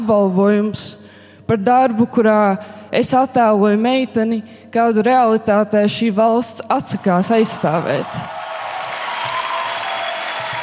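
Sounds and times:
speech: 0.1s - 8.4s
audience applause standing ovation: 7.2s - 10.6s.

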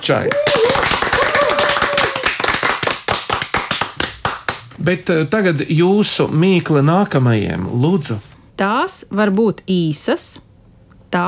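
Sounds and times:
speech: 0.0s - 1.0s, 4.8s - 10.5s
audience applause: 0.0s - 4.7s.

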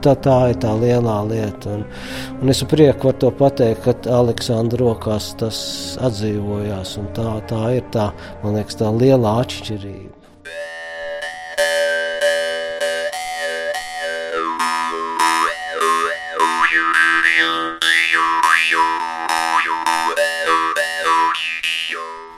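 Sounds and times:
speech: 0.0s - 10.7s
jaw harp twanging: 10.5s - 22.3s.

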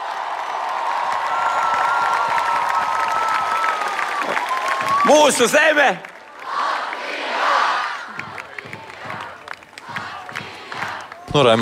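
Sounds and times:
crowd cheering: 0.0s - 11.5s
speech: 5.1s - 6.1s, 11.4s - 11.5s
large crowd chanting the country's name: 6.3s - 11.2s.

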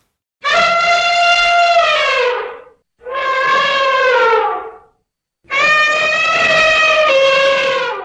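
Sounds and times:
elephant: 0.4s - 8.0s.

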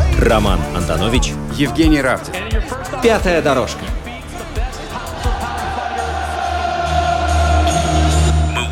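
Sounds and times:
speech: 0.2s - 4.0s
stadium crowd shouting: 4.4s - 8.6s.

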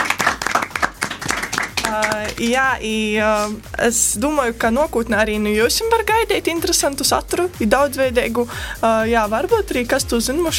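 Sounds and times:
audience applause: 0.0s - 2.4s
speech: 1.9s - 10.5s.

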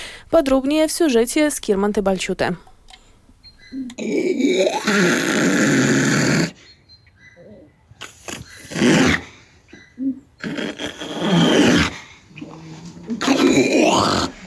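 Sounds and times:
speech: 0.3s - 2.7s, 3.7s - 6.6s
two-month-old female seal pup grunting in protest: 3.7s - 6.6s, 7.4s - 14.4s.

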